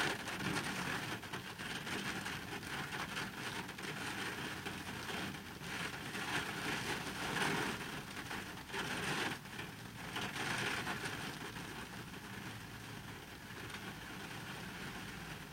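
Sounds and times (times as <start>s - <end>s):
heavy rain heard from inside an empty car: 0.0s - 15.5s.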